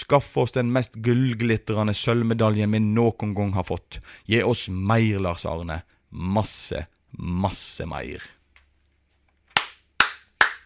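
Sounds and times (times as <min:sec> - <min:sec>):
speech: 0:00.0 - 0:08.4
hand clapping: 0:09.5 - 0:10.6.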